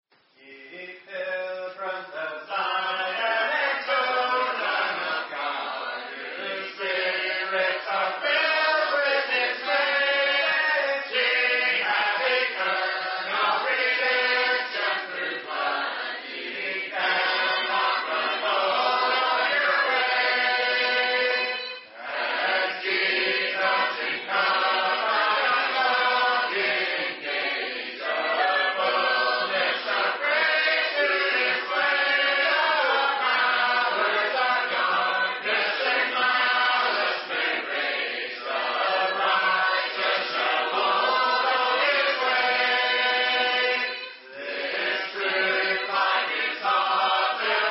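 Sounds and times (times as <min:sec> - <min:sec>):
a cappella hymn: 0:00.3 - 0:47.6.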